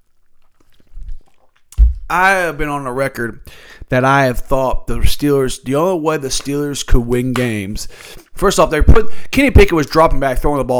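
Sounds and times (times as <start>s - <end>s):
person sipping a Pepsi: 0.0s - 1.8s, 7.8s - 8.4s
speech: 2.1s - 10.7s.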